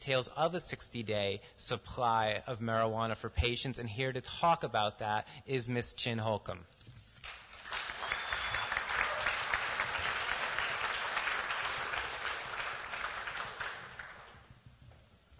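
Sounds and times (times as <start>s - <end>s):
speech: 0.0s - 6.8s
applause: 7.2s - 14.6s.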